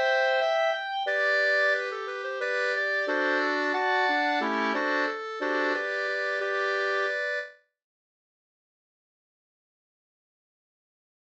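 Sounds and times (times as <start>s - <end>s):
ganglat in G major: 0.0s - 7.6s.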